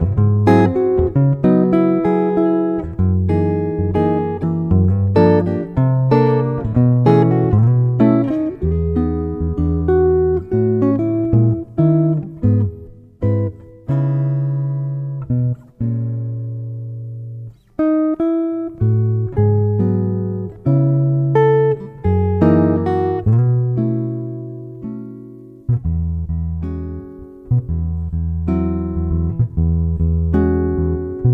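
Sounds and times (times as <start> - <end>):
rhythmic guitar performance: 0.0 - 31.3.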